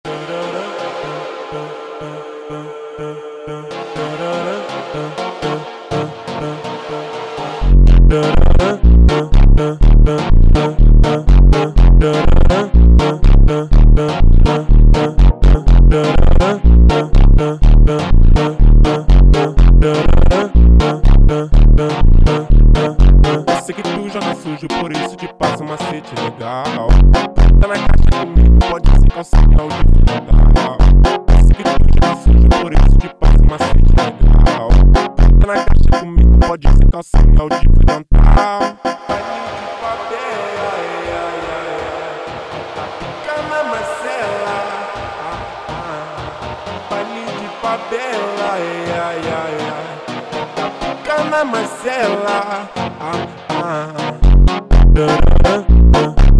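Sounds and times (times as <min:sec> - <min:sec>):
slowed funk music: 0:03.7 - 0:40.4, 0:41.2 - 0:56.3.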